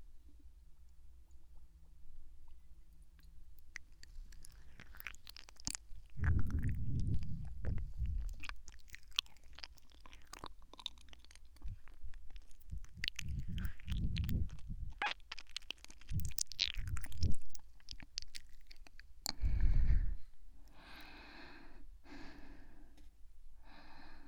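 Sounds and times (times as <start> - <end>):
wet chewing and biting of medicine: 3.2 - 19.5
faint breathing: 19.3 - 24.2.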